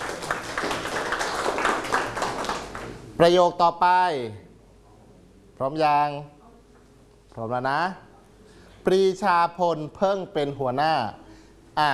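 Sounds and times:
classroom of students applauding group one: 0.0s - 3.0s
speech: 3.2s - 4.4s, 5.6s - 6.4s, 7.4s - 8.1s, 8.8s - 11.2s, 11.8s - 11.9s.

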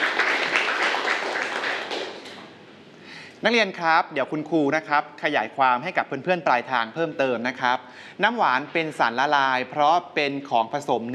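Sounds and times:
students clapping: 0.0s - 2.5s
speech: 3.4s - 11.1s.

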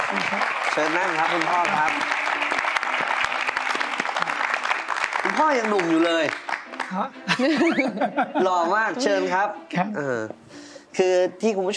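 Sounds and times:
audience applause welcoming a guest: 0.0s - 7.4s
speech: 0.1s - 2.2s, 5.3s - 10.4s, 11.0s - 11.7s
laughter: 7.2s - 9.4s.

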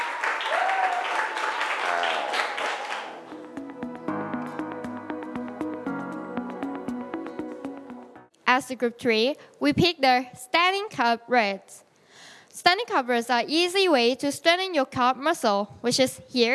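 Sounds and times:
exercise class round of applause: 0.0s - 3.5s
soft plucked music: 3.3s - 8.3s
speech: 8.6s - 11.8s, 12.6s - 16.5s.

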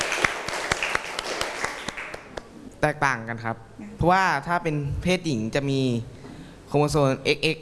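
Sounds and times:
classroom applause: 0.0s - 2.5s
speech: 2.8s - 7.5s.

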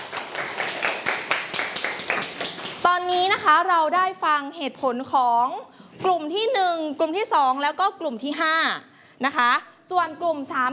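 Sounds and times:
classroom clapping: 0.0s - 2.9s
speech: 2.8s - 10.7s.

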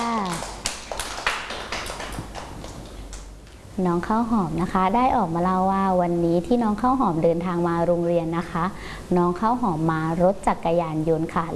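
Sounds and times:
children clapping: 0.0s - 3.3s
speech: 3.8s - 11.5s.

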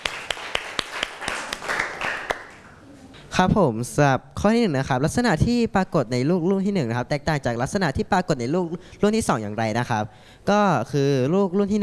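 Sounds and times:
classroom applause from a group of students: 0.0s - 2.7s
speech: 3.4s - 11.8s.

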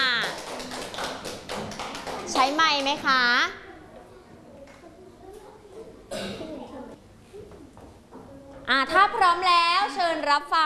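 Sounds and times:
children clapping: 0.0s - 3.1s
speech: 2.8s - 3.6s, 8.7s - 10.6s.

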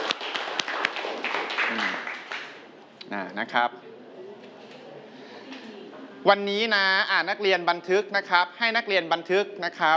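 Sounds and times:
students clapping hands: 0.0s - 2.6s
speech: 3.1s - 3.9s, 6.2s - 9.9s.

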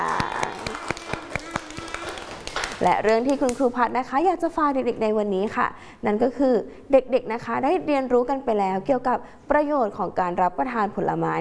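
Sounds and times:
children clapping for themselves after a classroom activity: 0.0s - 3.7s
speech: 2.8s - 11.4s.

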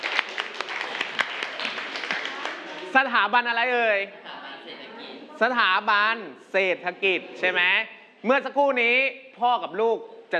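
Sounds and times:
students clapping in a classroom: 0.0s - 3.0s
speech: 2.9s - 4.8s, 5.4s - 10.3s.

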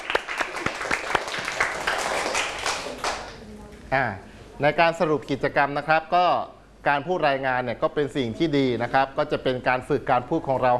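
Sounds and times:
students applauding themselves: 0.0s - 3.4s
speech: 3.9s - 10.7s.

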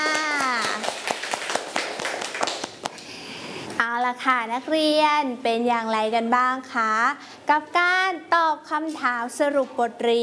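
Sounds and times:
children clapping hands: 0.0s - 3.0s
speech: 4.1s - 10.2s.

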